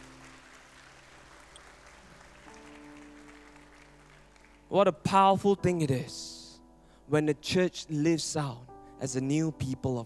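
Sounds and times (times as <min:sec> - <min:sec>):
audience clapping: 0:00.0 - 0:04.9
speech: 0:04.7 - 0:06.4, 0:07.1 - 0:10.0.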